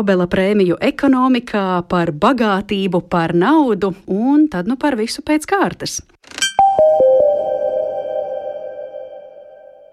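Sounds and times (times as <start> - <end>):
speech: 0.0 - 6.4
faint high steady tones: 6.6 - 9.9.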